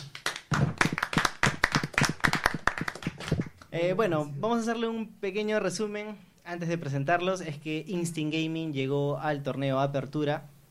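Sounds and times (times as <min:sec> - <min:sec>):
crowd applause: 0:00.0 - 0:03.5
speech: 0:03.8 - 0:10.5.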